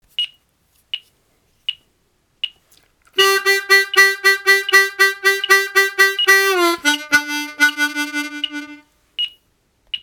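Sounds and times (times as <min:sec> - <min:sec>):
triplet turnaround riff: 0:03.2 - 0:08.8.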